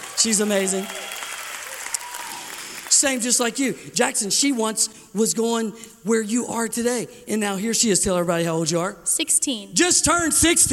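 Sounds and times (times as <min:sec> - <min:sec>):
crowd applauding: 0:00.0 - 0:03.6
speech: 0:00.2 - 0:01.1, 0:03.0 - 0:10.7.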